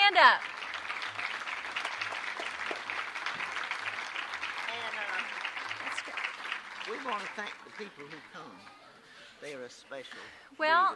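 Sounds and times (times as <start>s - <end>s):
audience applause for volunteers: 0.0s - 8.7s
speech: 0.2s - 0.6s, 7.0s - 8.8s, 9.4s - 10.9s.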